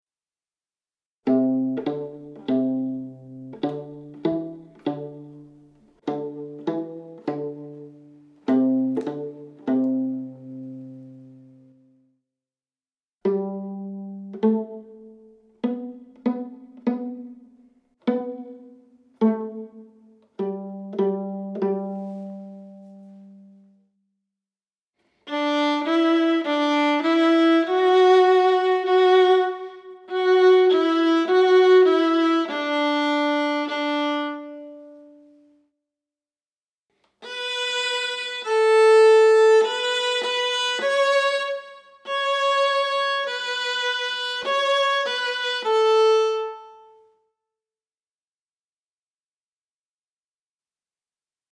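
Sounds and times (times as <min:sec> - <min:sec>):
alto improvisation: 0:01.2 - 0:11.8, 0:13.2 - 0:23.7, 0:25.3 - 0:35.5, 0:37.2 - 0:47.1.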